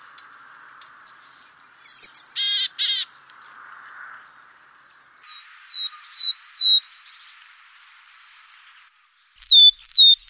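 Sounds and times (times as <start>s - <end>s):
willow tit singing descending whistled notes: 1.9s - 2.3s, 5.3s - 6.9s, 9.4s - 10.2s.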